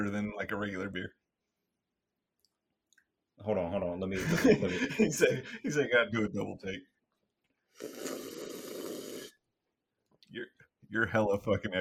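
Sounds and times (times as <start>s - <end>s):
speech: 0.0s - 1.2s, 3.4s - 6.9s, 7.8s - 8.4s, 10.3s - 11.7s
laughter: 4.2s - 5.8s
loud slurping of a drink: 7.7s - 9.4s.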